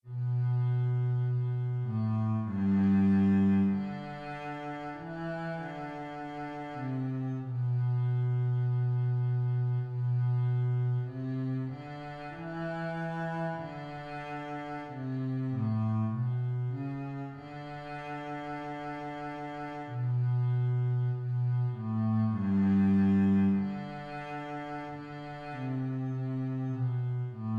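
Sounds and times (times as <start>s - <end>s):
bass: 0.0s - 27.5s.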